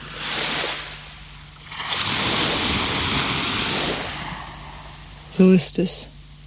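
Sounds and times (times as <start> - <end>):
ocean waves at the seaside: 0.0 - 5.4
speech: 5.4 - 6.2.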